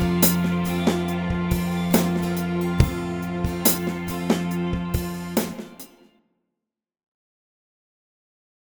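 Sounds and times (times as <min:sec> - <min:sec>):
instrumental music: 0:00.0 - 0:06.1.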